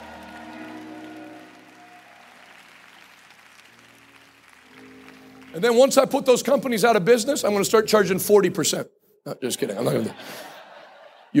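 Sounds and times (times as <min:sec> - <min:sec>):
audience clapping hands: 0:00.0 - 0:06.6
speech: 0:05.5 - 0:10.5
laughter: 0:09.8 - 0:11.3.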